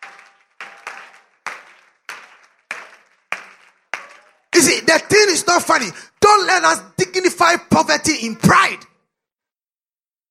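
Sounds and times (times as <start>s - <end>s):
audience clapping: 0.0s - 6.8s
speech: 4.6s - 8.9s.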